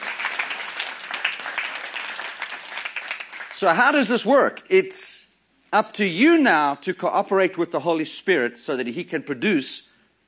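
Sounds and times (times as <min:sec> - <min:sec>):
audience applauding: 0:00.0 - 0:03.8
speech: 0:03.6 - 0:05.1, 0:05.7 - 0:10.2.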